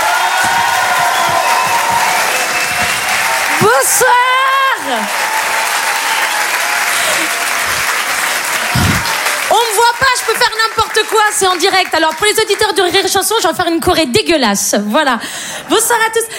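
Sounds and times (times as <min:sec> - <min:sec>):
audience cheering and applause: 0:00.0 - 0:12.9
speech: 0:03.8 - 0:05.2, 0:10.1 - 0:16.3.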